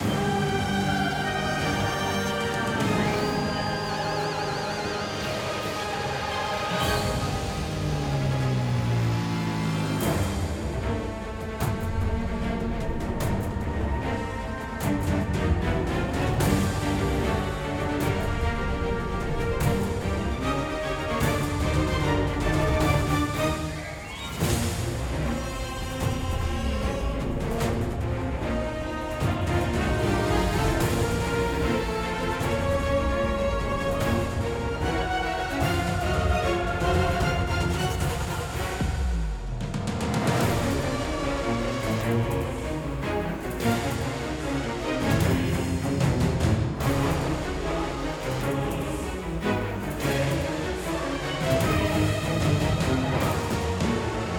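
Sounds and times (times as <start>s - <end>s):
boss battle music: 0.0s - 54.3s.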